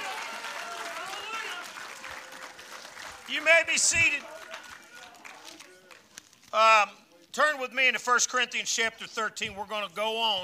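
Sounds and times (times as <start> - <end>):
audience applause on Valentine's Day: 0.0 - 6.1
speech: 3.3 - 4.4, 6.5 - 10.4.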